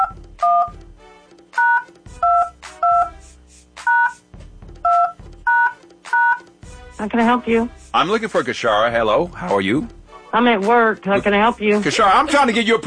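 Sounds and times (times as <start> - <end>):
telephone number dialed on a keypad: 0.0 - 0.8, 1.6 - 3.1, 3.9 - 4.2, 4.9 - 6.5
speech: 7.0 - 12.8.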